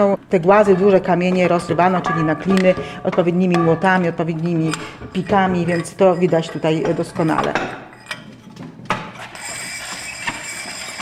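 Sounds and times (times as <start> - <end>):
speech: 0.0 - 7.8
hand-cranked grinding sharpener turning: 2.5 - 8.2, 9.2 - 11.0.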